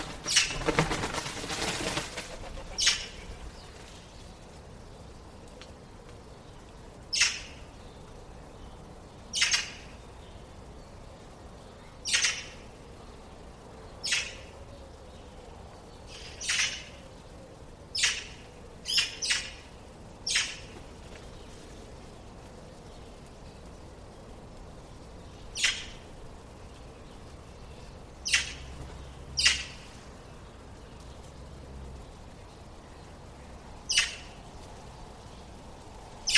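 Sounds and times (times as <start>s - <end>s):
steady faint hiss: 0.0s - 36.3s
bird giving harsh scratchy squawks: 2.3s - 3.5s.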